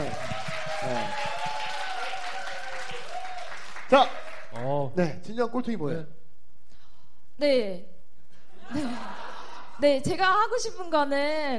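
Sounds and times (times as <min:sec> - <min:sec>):
audience clapping: 0:00.0 - 0:04.9
speech: 0:03.9 - 0:04.2, 0:04.8 - 0:06.2, 0:07.4 - 0:07.9, 0:08.7 - 0:09.1, 0:09.8 - 0:11.5.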